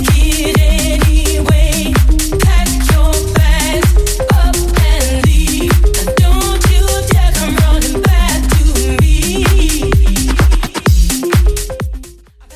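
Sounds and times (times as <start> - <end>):
house music DJ edit: 0.0 - 12.5.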